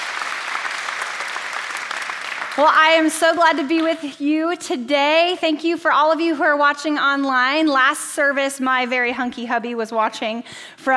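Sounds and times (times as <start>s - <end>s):
audience applause: 0.0s - 3.0s
speech: 2.6s - 10.9s.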